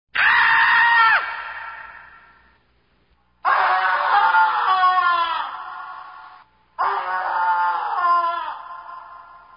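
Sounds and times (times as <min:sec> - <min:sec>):
person screaming: 0:00.2 - 0:02.0, 0:03.4 - 0:06.2, 0:06.8 - 0:09.5.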